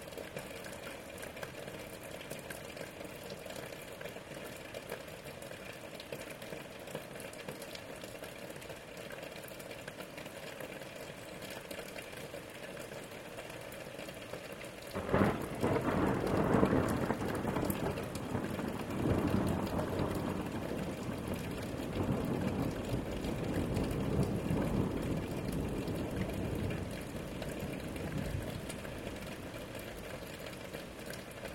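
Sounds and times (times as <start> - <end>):
rain: 0.0 - 31.5
thunder: 15.0 - 28.8.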